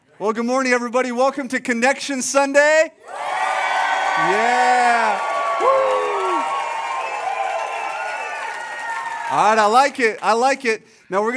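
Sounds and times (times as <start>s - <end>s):
speech: 0.2s - 3.3s, 4.2s - 5.8s, 9.3s - 11.3s
loud whoop at a Sunday church service: 3.0s - 9.7s
church congregation cheering roar: 3.0s - 10.0s.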